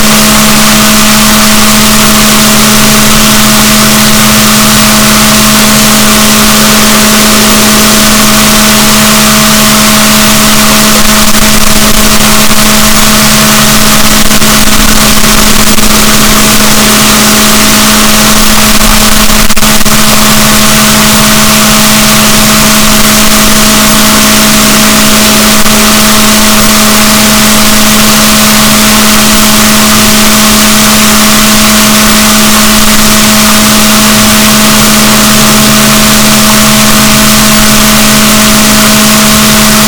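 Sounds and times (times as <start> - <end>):
boat: 0.0 - 39.8.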